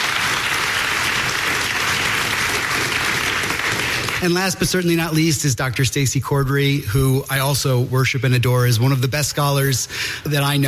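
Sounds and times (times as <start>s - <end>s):
audience applause: 0.0s - 4.6s
speech: 4.2s - 10.6s.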